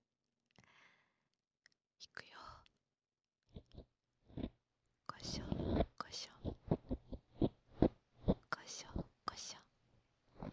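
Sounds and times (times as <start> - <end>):
ear cleaning sounds: 3.5 - 4.5, 5.3 - 8.5, 10.3 - 10.5.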